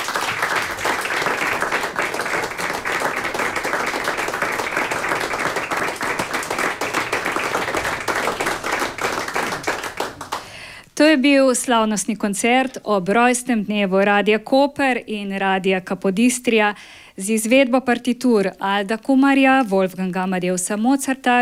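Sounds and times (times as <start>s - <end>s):
audience applause: 0.0s - 10.6s
speech: 11.0s - 21.4s.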